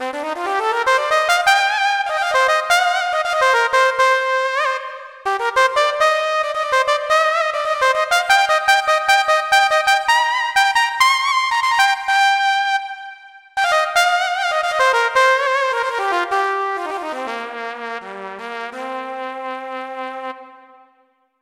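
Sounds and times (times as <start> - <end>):
trumpet: 0.0 - 21.1.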